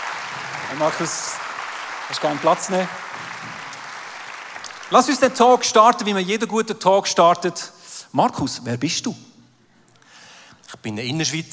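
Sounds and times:
audience applause: 0:00.0 - 0:06.3
speech: 0:00.7 - 0:01.4, 0:02.1 - 0:03.3, 0:04.9 - 0:09.3, 0:10.8 - 0:11.5.

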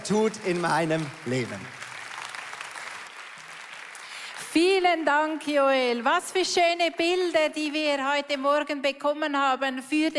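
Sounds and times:
audience applause: 0:00.0 - 0:04.8
speech: 0:00.1 - 0:01.8, 0:04.6 - 0:10.1.

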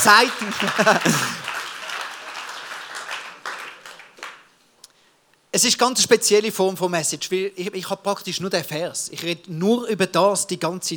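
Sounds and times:
laughter: 0:00.0 - 0:02.4
audience applause: 0:00.0 - 0:04.5
speech: 0:00.1 - 0:01.5, 0:05.6 - 0:10.9.

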